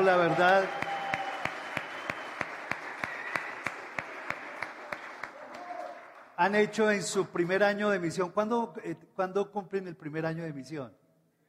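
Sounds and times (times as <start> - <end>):
speech: 0.0 - 0.8, 6.4 - 11.0
sharp claps: 0.0 - 6.3
audience applause: 0.0 - 6.4.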